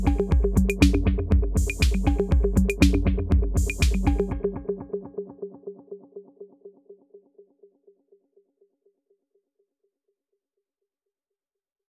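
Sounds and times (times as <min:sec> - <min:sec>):
drum loop: 0:00.0 - 0:04.5.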